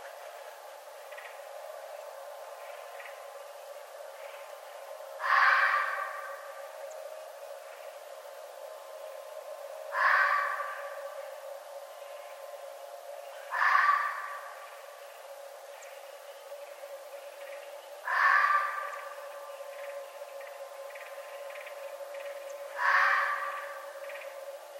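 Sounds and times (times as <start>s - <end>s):
red fox calling: 5.2s - 6.6s, 9.9s - 11.3s, 13.4s - 14.8s, 18.0s - 20.0s, 20.9s - 24.3s.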